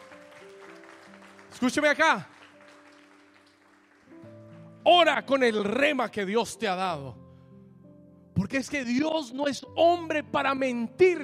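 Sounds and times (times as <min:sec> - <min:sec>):
audience applause: 0:00.0 - 0:04.4
speech: 0:01.6 - 0:02.3, 0:04.9 - 0:07.2, 0:08.4 - 0:11.2.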